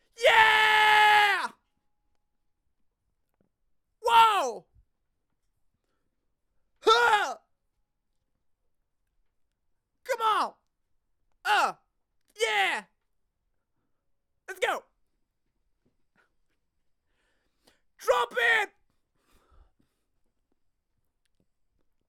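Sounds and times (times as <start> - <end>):
young man screaming excitedly: 0.2 - 1.6, 4.0 - 4.6, 6.8 - 7.4, 10.1 - 10.5, 11.5 - 11.8, 12.4 - 12.9, 14.5 - 14.8, 18.0 - 18.7.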